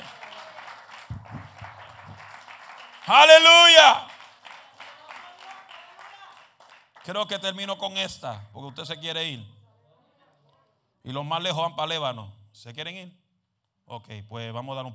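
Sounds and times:
audience applause: 0:00.0 - 0:07.2
person shouting: 0:03.1 - 0:04.1
speech: 0:03.1 - 0:04.1, 0:07.1 - 0:09.6, 0:11.0 - 0:13.2, 0:13.9 - 0:14.9.

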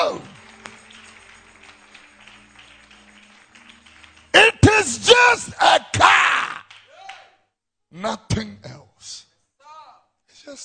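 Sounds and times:
hands clapping: 0:00.0 - 0:07.4.

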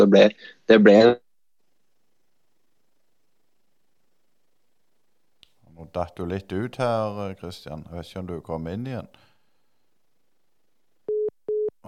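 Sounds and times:
speech: 0:00.0 - 0:01.2, 0:05.8 - 0:09.3
electronic beeps of a phone line tone: 0:11.1 - 0:11.7.

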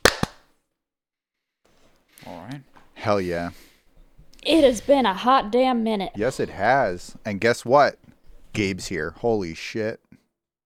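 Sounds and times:
single hand clap for audio sync: 0:00.0 - 0:00.5
speech: 0:02.2 - 0:03.7, 0:04.4 - 0:10.0.

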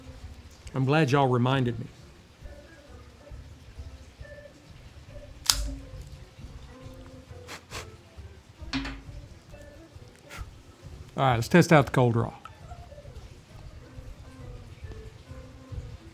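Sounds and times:
speech: 0:00.7 - 0:02.0, 0:11.2 - 0:12.4
cigar cutter snipping the triple cap of a cigar: 0:05.4 - 0:05.9.

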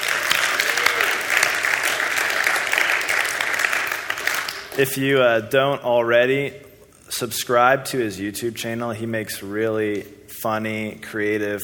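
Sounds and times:
audience applause: 0:00.0 - 0:04.8
speech: 0:04.8 - 0:11.6.

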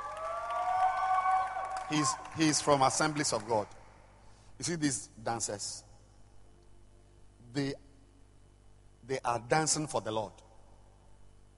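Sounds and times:
high-pitched whoops and voices: 0:00.0 - 0:02.2
audience clapping: 0:00.0 - 0:03.7
speech: 0:01.9 - 0:03.8, 0:04.6 - 0:05.9, 0:07.6 - 0:07.8, 0:09.1 - 0:10.4.

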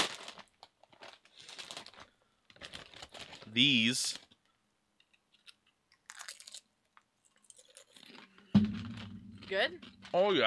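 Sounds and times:
speech: 0:03.6 - 0:04.2, 0:09.5 - 0:10.4
person crunching Lucky Charms cereal: 0:06.0 - 0:06.7, 0:07.4 - 0:08.3.

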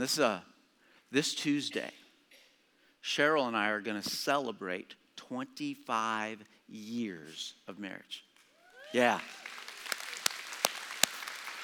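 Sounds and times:
speech: 0:00.0 - 0:00.5, 0:01.1 - 0:02.0, 0:03.0 - 0:08.3, 0:08.9 - 0:09.5
faint audience applause for a couple celebrating 25 years of marriage: 0:08.5 - 0:11.6.

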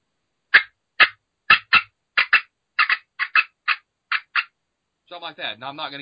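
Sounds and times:
imitated aggressive hen turkey cutting call: 0:00.6 - 0:04.5
speech: 0:05.1 - 0:06.0.

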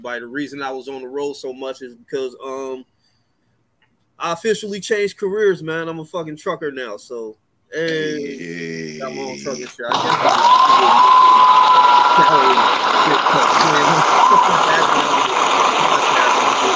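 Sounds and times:
speech: 0:00.0 - 0:02.9, 0:04.2 - 0:15.6
laughter: 0:07.9 - 0:11.2, 0:11.9 - 0:16.7
loud applause: 0:09.6 - 0:16.7.

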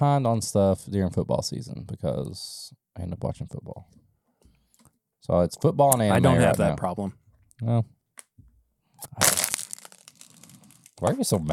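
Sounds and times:
speech: 0:00.0 - 0:04.0, 0:05.2 - 0:08.0, 0:09.0 - 0:09.4, 0:11.0 - 0:11.5
plastic water bottle being crushed: 0:09.1 - 0:11.0.

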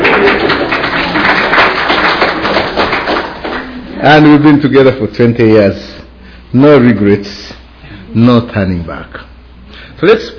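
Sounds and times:
audience clapping: 0:00.0 - 0:04.4
speech: 0:04.0 - 0:05.9, 0:06.5 - 0:07.5, 0:08.1 - 0:09.3, 0:10.0 - 0:10.3.

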